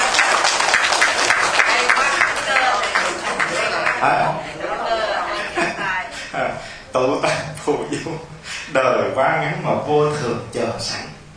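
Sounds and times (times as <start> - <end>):
listeners clapping at a Buddhist dharma talk: 0.0 - 4.5
people chuckling and laughing: 3.0 - 8.2
speech: 4.0 - 4.6, 6.9 - 11.1.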